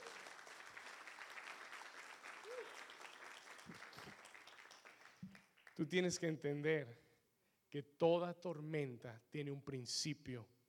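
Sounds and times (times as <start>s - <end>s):
audience applauding for Jesus: 0.0s - 5.8s
speech: 5.8s - 7.0s, 7.7s - 10.6s.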